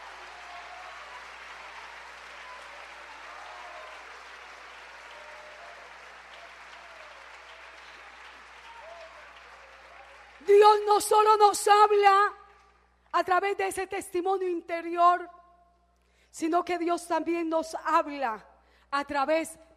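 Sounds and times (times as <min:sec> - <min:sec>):
audience applause: 0:00.0 - 0:11.4
speech: 0:10.4 - 0:12.4, 0:13.2 - 0:15.4, 0:16.4 - 0:19.6.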